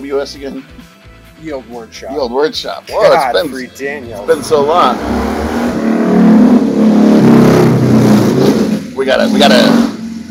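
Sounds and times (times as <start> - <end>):
speech: 0.0 - 5.7, 9.0 - 9.9
chopper motorcycle engine revving: 4.0 - 10.2.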